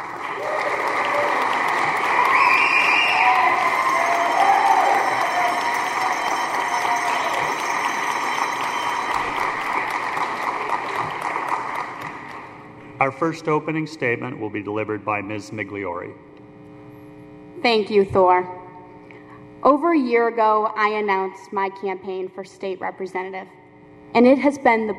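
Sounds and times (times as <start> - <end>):
cheering and whoops: 0.0 - 11.4
audience applause: 0.0 - 12.6
speech: 13.1 - 16.3, 17.6 - 18.6, 19.6 - 24.9.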